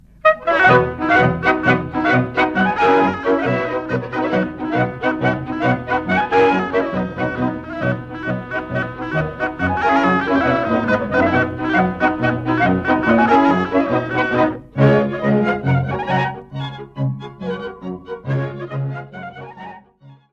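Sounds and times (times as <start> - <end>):
Czech polka music: 0.0 - 20.0.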